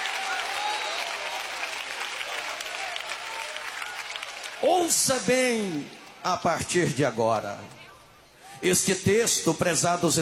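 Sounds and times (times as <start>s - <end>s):
audience applauding: 0.0s - 6.2s
speech: 4.6s - 7.8s, 8.6s - 10.2s.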